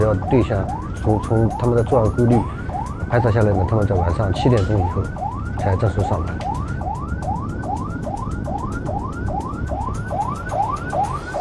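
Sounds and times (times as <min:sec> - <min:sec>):
engine and road noise: 0:00.0 - 0:11.3
police car siren yelping: 0:00.0 - 0:11.3
speech: 0:00.1 - 0:06.6.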